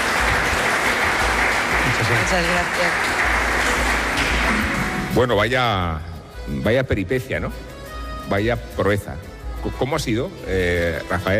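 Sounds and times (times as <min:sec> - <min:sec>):
audience applause: 0:00.0 - 0:05.1
speech: 0:02.0 - 0:03.7, 0:05.2 - 0:07.7, 0:08.3 - 0:11.3.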